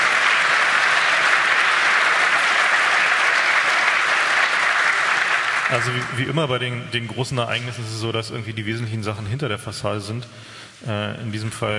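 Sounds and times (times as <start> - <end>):
large audience clapping: 0.0 - 6.7
speech: 5.7 - 11.7.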